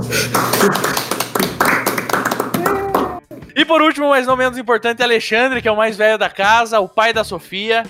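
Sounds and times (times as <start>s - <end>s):
crowd applause: 0.0s - 3.2s
speech: 0.1s - 0.9s, 3.7s - 7.8s.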